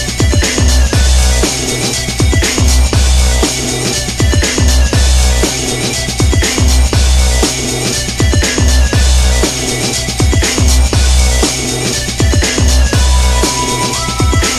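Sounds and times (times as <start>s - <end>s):
drum and bass remix: 0.0s - 14.5s.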